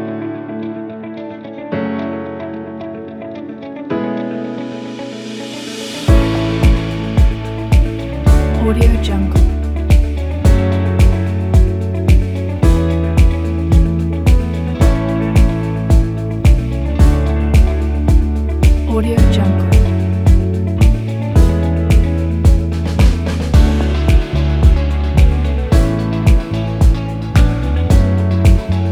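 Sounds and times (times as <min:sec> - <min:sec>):
hopeful inspiring positive corporate music: 0:06.0 - 0:28.9.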